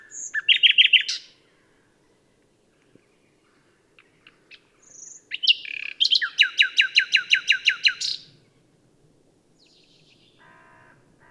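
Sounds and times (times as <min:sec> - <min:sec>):
common nightingale rattling song: 0:00.0 - 0:01.3, 0:04.0 - 0:08.3.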